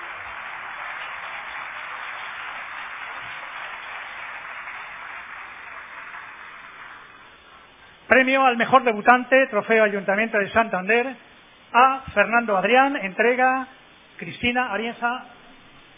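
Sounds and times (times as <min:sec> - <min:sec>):
crowd applause: 0:00.0 - 0:07.7
speech: 0:08.1 - 0:15.4.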